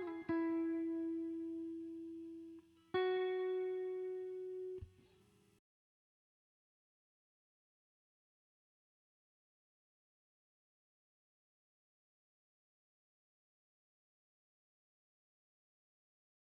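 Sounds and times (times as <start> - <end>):
guitar layer loop in E major at 136 BPM: 0.0 - 5.0.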